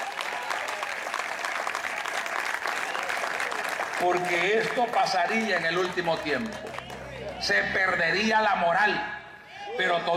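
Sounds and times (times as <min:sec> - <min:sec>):
audience applause: 0:00.0 - 0:08.0
speech: 0:04.0 - 0:09.2, 0:09.8 - 0:10.1.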